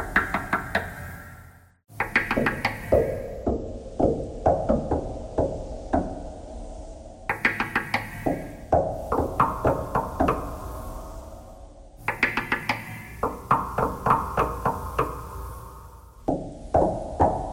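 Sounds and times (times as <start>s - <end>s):
knocking thread noise: 1.9s - 6.3s, 7.3s - 10.6s, 12.0s - 15.3s, 16.3s - 17.5s.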